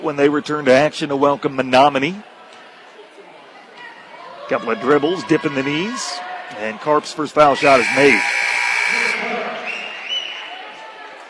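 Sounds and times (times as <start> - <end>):
speech: 0.0 - 2.3, 4.5 - 8.4
substitution buzzer at the scorer's table: 7.6 - 9.7.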